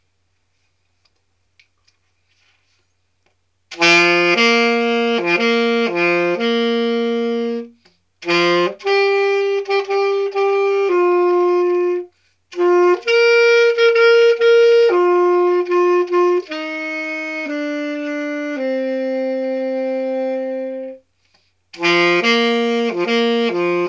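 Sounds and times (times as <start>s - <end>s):
saxophone: 3.7s - 23.8s.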